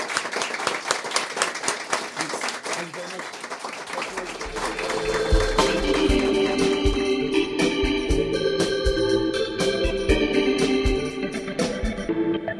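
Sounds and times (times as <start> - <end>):
audience applause: 0.0 - 7.7
music with a deep bass layer: 4.5 - 12.5.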